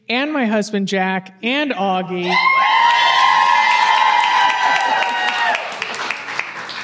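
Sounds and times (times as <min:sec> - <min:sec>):
speech: 0:00.1 - 0:03.0
room full of women cheering with whoops and shouts: 0:02.2 - 0:06.0
scattered clapping: 0:03.5 - 0:06.8.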